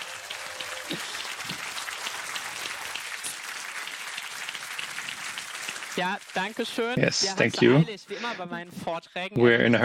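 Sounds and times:
audience applause: 0.0 - 7.8
speech: 0.9 - 1.6, 6.0 - 9.8.

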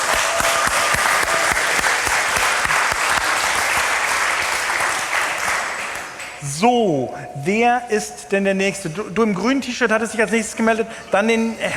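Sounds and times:
audience applause: 0.0 - 6.4
speech: 6.6 - 11.7.

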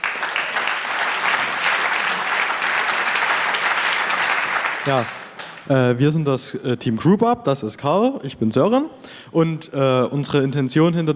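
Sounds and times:
audience applause: 0.0 - 5.7
speech: 4.8 - 11.1.

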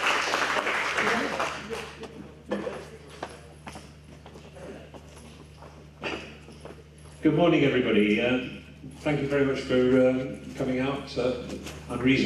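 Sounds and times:
audience applause: 0.0 - 2.1
speech: 7.2 - 12.2.

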